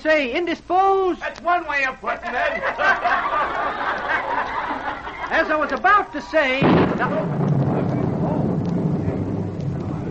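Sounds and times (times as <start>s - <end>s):
speech: 0.0s - 4.4s, 5.3s - 7.5s
laughter: 2.1s - 6.1s
rain: 6.6s - 10.0s.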